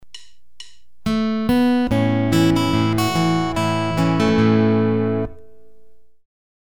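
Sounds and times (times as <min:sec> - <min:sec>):
Travis style fingerpicked guitar: 0:01.0 - 0:06.2.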